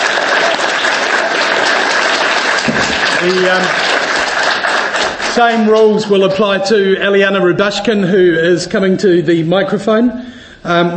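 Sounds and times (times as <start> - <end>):
audience applause: 0.0 - 6.4
speech: 3.2 - 3.9, 5.4 - 10.9.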